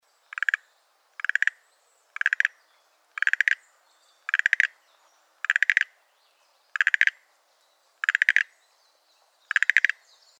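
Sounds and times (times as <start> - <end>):
Schlegel's green tree frog calling: 0.2 - 8.8, 9.4 - 10.3.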